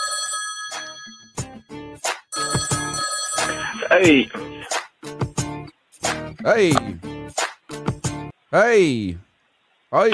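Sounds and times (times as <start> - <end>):
phone ringing with bright electronic ringtone: 0.0 - 1.6, 2.3 - 4.6
speech: 3.9 - 4.4, 6.4 - 7.0, 8.5 - 9.2, 9.9 - 10.1.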